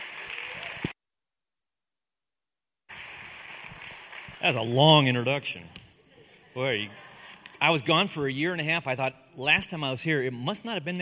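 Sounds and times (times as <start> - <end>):
church congregation applauding to welcome a guest speaker: 0.0 - 1.0, 2.9 - 5.5
speech: 4.4 - 5.8, 6.6 - 7.0, 7.6 - 10.9.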